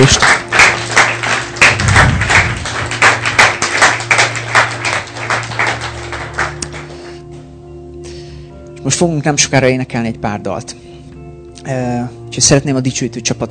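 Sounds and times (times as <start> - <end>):
audience applause: 0.0 - 7.2
speech: 9.0 - 10.9, 11.6 - 13.4.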